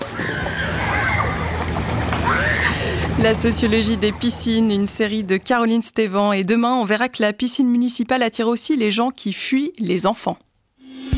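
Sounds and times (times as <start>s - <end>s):
children splashing and paddling in a swimming pool on inflatable floats: 0.0s - 3.2s
speech: 3.2s - 10.5s.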